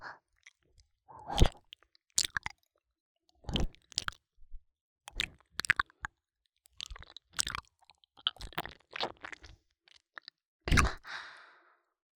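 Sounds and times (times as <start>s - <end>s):
ear licking sounds: 1.3s - 2.6s, 5.1s - 6.1s, 6.7s - 11.0s
soft biting sounds: 1.3s - 2.6s, 3.5s - 4.2s, 5.1s - 6.0s, 6.7s - 11.0s.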